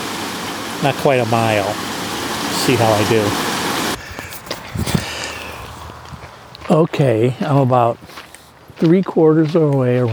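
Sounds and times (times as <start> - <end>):
speech: 0.8 - 1.9, 2.6 - 3.5, 6.7 - 8.2, 8.8 - 10.1
footsteps walking around a low water reservoir: 4.0 - 10.1.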